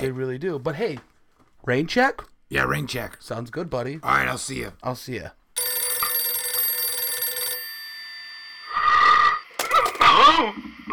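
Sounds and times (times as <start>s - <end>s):
speech: 0.0s - 5.4s, 10.4s - 10.9s
telephone ringing: 5.6s - 10.5s.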